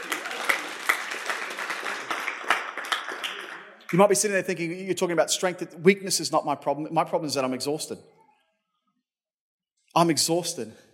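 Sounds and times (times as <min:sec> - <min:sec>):
audience clapping: 0:00.0 - 0:04.4
speech: 0:03.9 - 0:08.2, 0:10.0 - 0:10.9.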